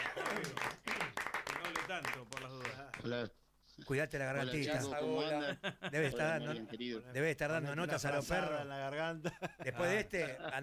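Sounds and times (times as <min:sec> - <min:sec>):
audience applause: 0:00.0 - 0:02.8
speech: 0:01.9 - 0:10.6.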